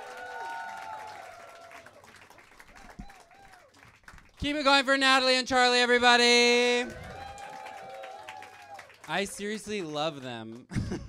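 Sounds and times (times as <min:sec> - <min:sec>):
high whoops and cheers: 0:00.0 - 0:02.0, 0:02.8 - 0:03.7, 0:06.8 - 0:09.0
audience applauding: 0:00.0 - 0:04.9, 0:06.7 - 0:10.7
speech: 0:04.4 - 0:07.0, 0:09.1 - 0:11.0.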